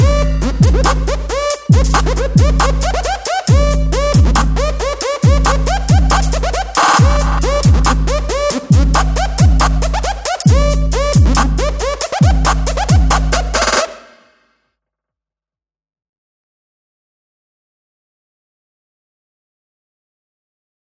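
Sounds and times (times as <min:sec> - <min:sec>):
music beat: 0:00.0 - 0:14.4.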